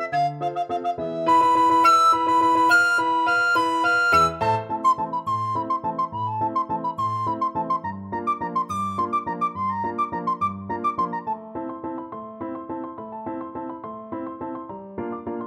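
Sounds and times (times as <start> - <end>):
recorder playing classical piece: 0.0 - 11.5.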